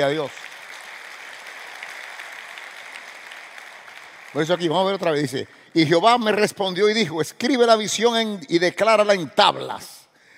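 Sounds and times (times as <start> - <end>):
speech: 0.0 - 0.4, 4.4 - 10.0
audience applause: 0.0 - 5.4.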